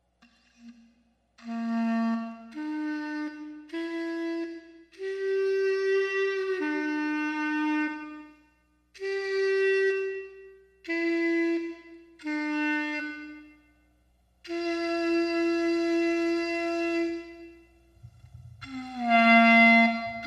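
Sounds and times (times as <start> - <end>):
clarinet: 0.2 - 13.8, 14.4 - 20.2.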